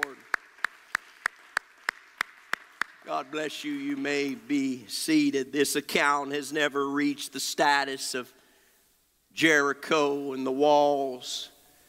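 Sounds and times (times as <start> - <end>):
group clapping in unison: 0.0 - 3.4
speech: 3.1 - 8.4, 9.4 - 11.5.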